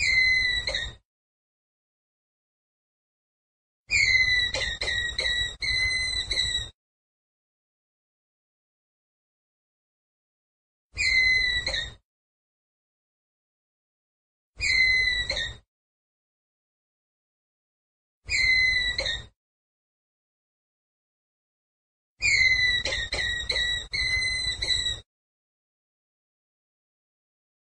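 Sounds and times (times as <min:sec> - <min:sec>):
ground squirrel whistled call: 0:00.0 - 0:01.0, 0:03.9 - 0:06.7, 0:11.0 - 0:12.0, 0:14.6 - 0:15.6, 0:18.3 - 0:19.3, 0:22.2 - 0:25.0.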